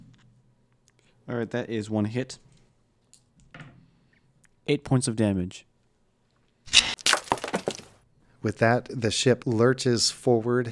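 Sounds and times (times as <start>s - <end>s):
speech: 1.3s - 2.5s, 4.7s - 5.7s, 8.4s - 10.7s
glass viewport cracking: 6.7s - 7.9s.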